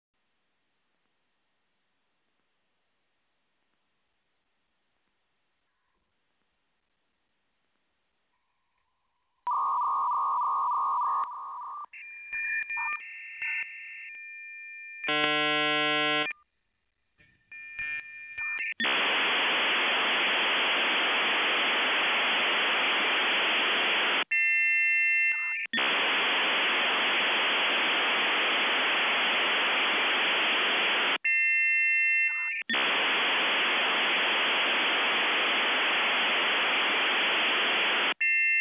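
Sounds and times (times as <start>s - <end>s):
SIP modem: 9.5s - 13.7s, 15.0s - 16.4s, 17.5s - 31.5s, 32.1s - 38.5s.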